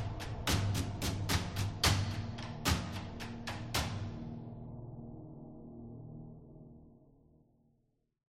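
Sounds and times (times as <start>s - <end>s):
drums and percussion: 0.0s - 4.4s.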